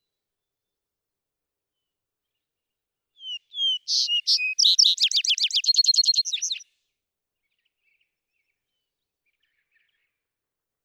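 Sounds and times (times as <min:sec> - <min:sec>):
vesper sparrow singing: 0:03.2 - 0:06.6.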